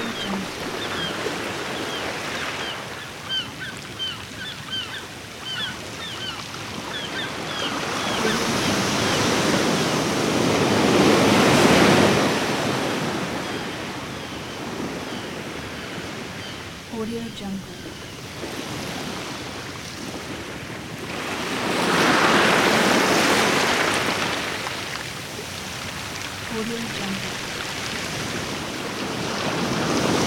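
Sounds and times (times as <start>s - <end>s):
seagulls calling: 0.0s - 10.0s, 26.6s - 28.7s
sea waves: 0.0s - 30.2s.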